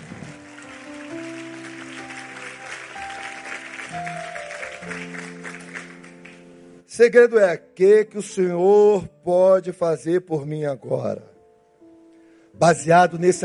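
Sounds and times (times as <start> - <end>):
audience applauding: 0.0 - 6.6
sustained keyboard or organ chords: 0.0 - 8.2
speech: 7.0 - 11.3, 12.6 - 13.4.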